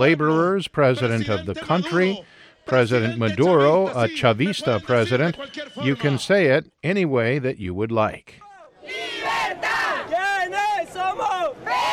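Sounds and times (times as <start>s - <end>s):
speech: 0.0s - 9.0s
crowd of supporters cheering at rally: 8.4s - 11.9s.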